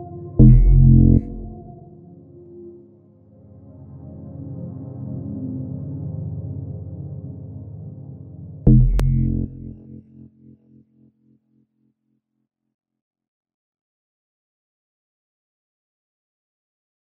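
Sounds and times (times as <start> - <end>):
soundscape: 0.0 - 2.7, 8.7 - 10.4.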